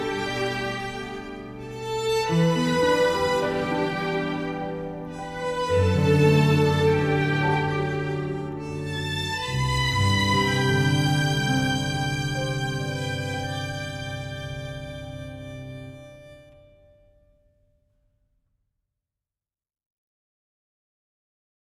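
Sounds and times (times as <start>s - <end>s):
tango music: 0.0s - 16.5s.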